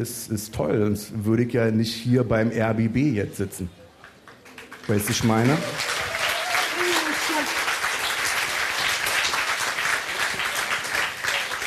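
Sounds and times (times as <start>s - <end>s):
speech: 0.0s - 3.8s, 4.9s - 5.9s
audience clapping: 4.0s - 11.6s.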